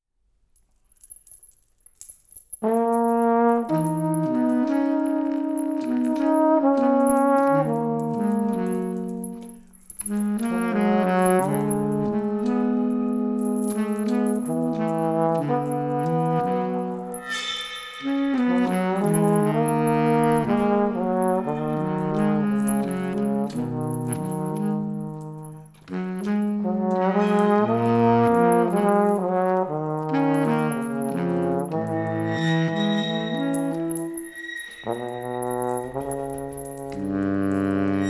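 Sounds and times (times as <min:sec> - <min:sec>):
brass band playing: 0:02.6 - 0:09.4, 0:10.0 - 0:38.0.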